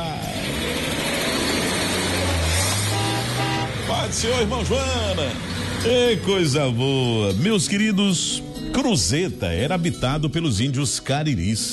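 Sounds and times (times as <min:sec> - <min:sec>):
vehicle engine accelerating at the start of a trip: 0:00.0 - 0:07.3
road noise: 0:00.0 - 0:10.6
speech: 0:04.1 - 0:11.7.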